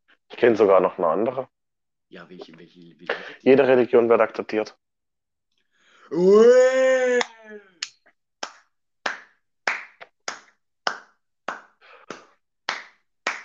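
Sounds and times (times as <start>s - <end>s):
speech: 0.4s - 4.8s, 6.1s - 7.7s
applause edited in: 9.1s - 13.4s.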